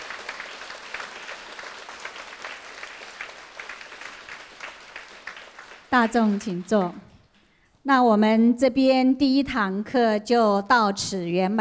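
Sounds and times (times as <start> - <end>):
warm audience applause: 0.0 - 7.1
speech: 5.9 - 7.1, 7.8 - 11.6.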